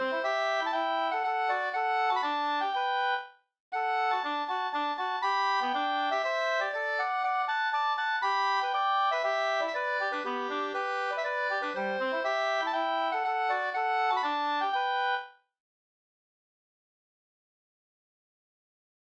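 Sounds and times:
two-part polska folk dance tune: 0.0s - 3.2s, 3.8s - 15.2s.

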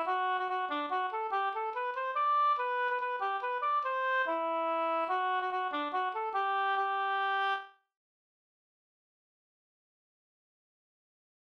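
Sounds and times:
hambo polka music: 0.0s - 7.6s.

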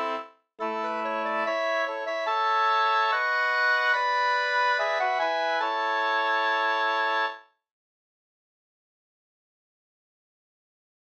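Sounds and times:
wedding march music: 0.0s - 7.3s.

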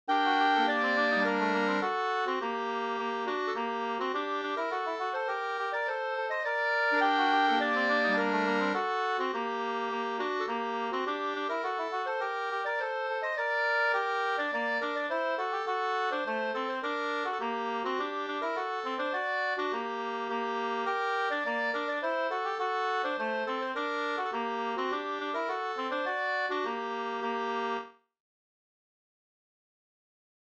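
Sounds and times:
slängpolska folk dance tune: 0.1s - 27.9s.

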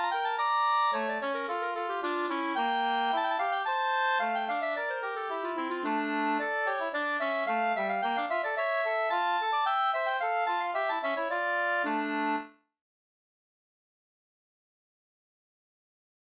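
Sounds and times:
two-part slangpolska: 0.0s - 12.5s.

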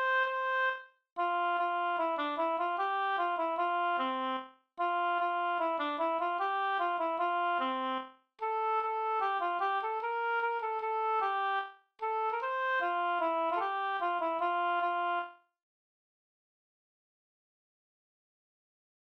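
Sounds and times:
folk song melody: 0.0s - 15.3s.

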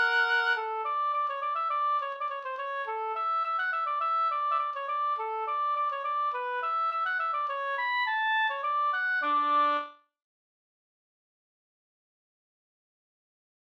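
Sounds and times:
polka music: 0.0s - 9.9s.

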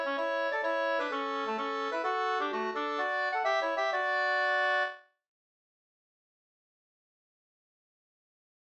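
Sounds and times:
pols folk dance tune: 0.0s - 5.0s.

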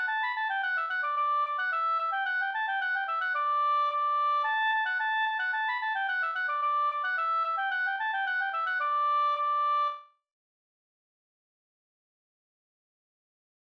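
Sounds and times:
Swedish folk tune: 0.0s - 10.0s.

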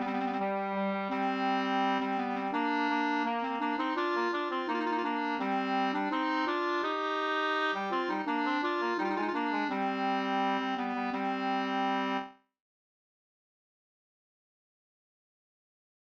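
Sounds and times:
ganglat music in C minor: 0.0s - 12.4s.

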